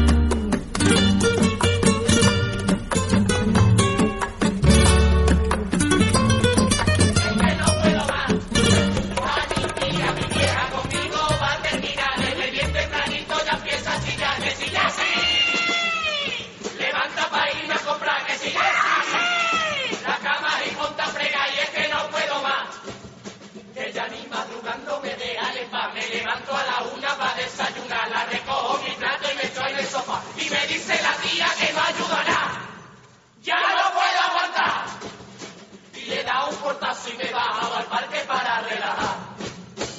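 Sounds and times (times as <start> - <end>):
drums: 0.0 - 39.9
carnival murga group singing in chorus: 7.1 - 15.6, 16.2 - 35.3, 35.9 - 39.6.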